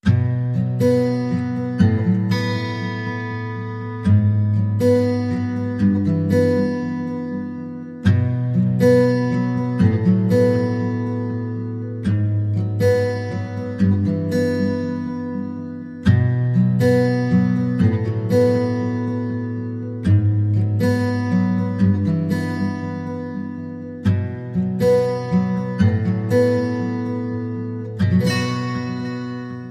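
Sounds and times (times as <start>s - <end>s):
guitar: 0.0s - 29.6s.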